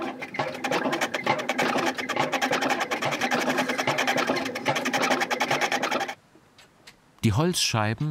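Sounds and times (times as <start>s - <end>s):
foot-powered woodturning machine running: 0.0s - 6.2s
speech: 7.2s - 8.0s.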